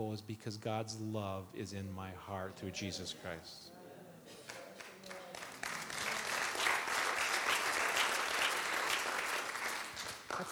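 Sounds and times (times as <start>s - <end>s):
speech: 0.0s - 4.4s, 10.4s - 10.5s
audience clapping: 4.4s - 10.5s.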